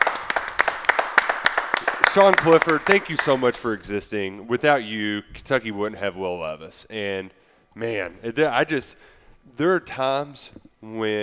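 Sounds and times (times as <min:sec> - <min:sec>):
round of applause: 0:00.0 - 0:03.7
speech: 0:02.1 - 0:11.2.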